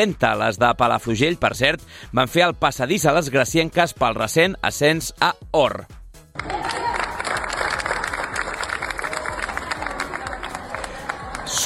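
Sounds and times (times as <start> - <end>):
speech: 0.0 - 6.6
crowd applause: 6.4 - 11.6
faint cheering: 6.4 - 11.6.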